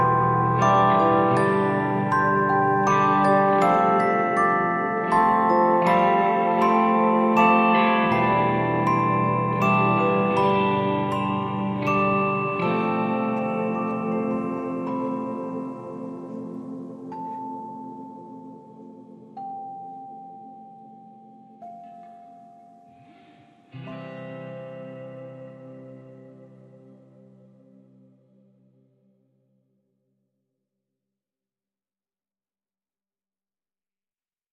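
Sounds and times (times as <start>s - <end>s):
celeste: 0.0s - 27.6s
guitar: 0.0s - 29.0s.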